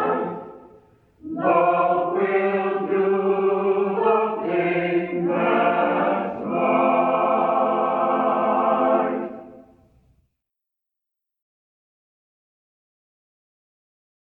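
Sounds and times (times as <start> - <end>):
Shaker spiritual song: 0.0 - 10.0.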